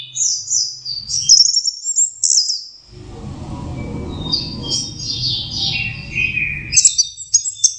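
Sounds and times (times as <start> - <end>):
orange-headed thrush singing: 2.9 - 7.3.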